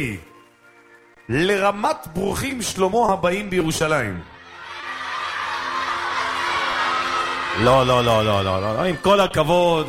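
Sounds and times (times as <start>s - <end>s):
speech: 0.0s - 0.3s, 1.3s - 4.3s, 7.6s - 9.8s
audience roaring together during a live group game: 4.5s - 8.2s.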